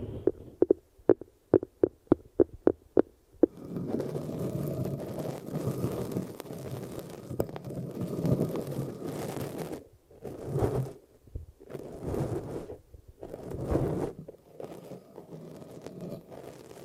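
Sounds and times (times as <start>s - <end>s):
ear massage low rubbing: 0.0s - 11.0s, 11.6s - 16.8s
sharp taps: 0.3s - 3.1s.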